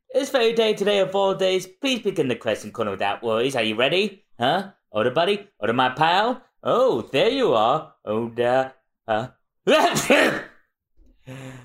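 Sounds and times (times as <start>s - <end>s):
speech: 0.2s - 10.5s
person faking a sneeze: 9.8s - 10.6s.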